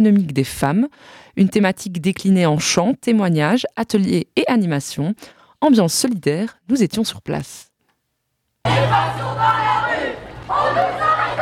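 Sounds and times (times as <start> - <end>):
speech: 0.0 - 7.7, 8.6 - 9.7
crowd of protesters shouting: 8.7 - 11.4.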